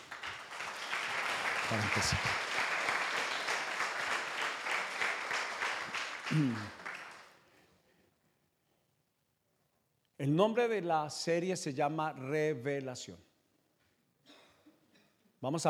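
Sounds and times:
crowd applause: 0.0 - 7.4
speech: 1.7 - 2.5, 6.3 - 6.8, 10.2 - 13.3, 15.4 - 15.6.

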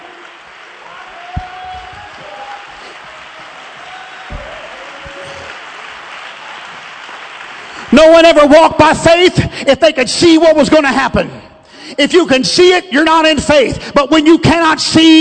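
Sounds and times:
large crowd clapping: 0.0 - 8.5
speech: 7.9 - 11.4, 12.0 - 15.1.

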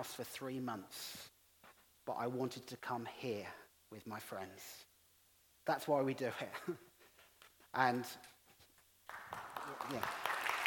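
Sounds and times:
speech: 0.0 - 1.3, 2.1 - 4.9, 5.6 - 6.9, 7.7 - 8.4, 9.1 - 10.3
audience clapping at a church gathering: 9.0 - 10.6.

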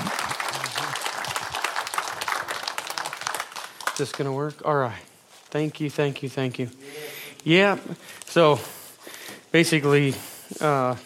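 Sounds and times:
church congregation at Harvest Bible Church applauding a speaker: 0.0 - 4.4
speech: 4.0 - 8.8, 9.5 - 11.0.

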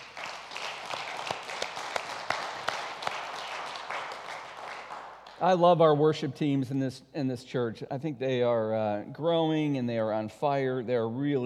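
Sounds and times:
applause: 0.0 - 5.4
speech: 5.4 - 11.4.

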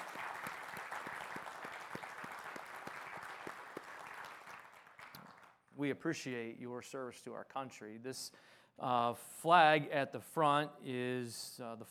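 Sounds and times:
audience applause honoring veterans: 0.0 - 5.5
speech: 5.8 - 11.9.

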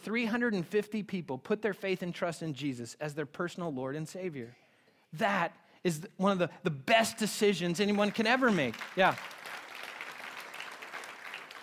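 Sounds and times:
speech: 0.0 - 9.4
audience applause: 8.3 - 11.6.

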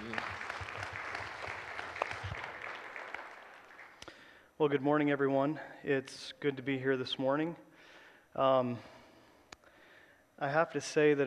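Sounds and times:
church audience applauding to welcome a speaker: 0.0 - 4.0
speech: 4.6 - 7.7, 8.4 - 9.0, 10.4 - 11.2.

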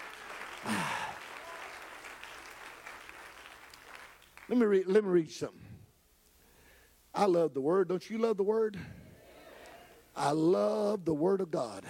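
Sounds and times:
audience clapping hands: 0.0 - 4.9
speech: 4.5 - 5.6, 7.2 - 9.0, 10.2 - 11.8.

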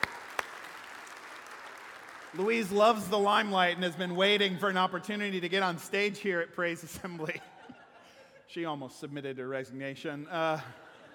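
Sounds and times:
handclaps: 0.0 - 3.1
speech: 2.3 - 7.5, 8.5 - 10.8
laughter: 6.8 - 8.6, 10.4 - 11.1.

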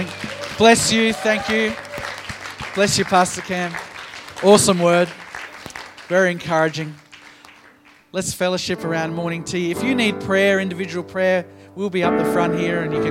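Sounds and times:
speech: 0.0 - 1.8, 2.8 - 5.2, 6.1 - 7.0, 8.1 - 13.1
audience applause: 0.0 - 8.1.

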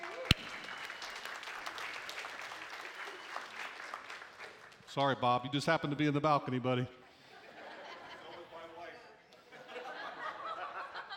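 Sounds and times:
crowd applauding in a large room: 0.0 - 4.8
speech: 5.0 - 7.0
laughter: 7.2 - 8.8, 9.4 - 11.1.

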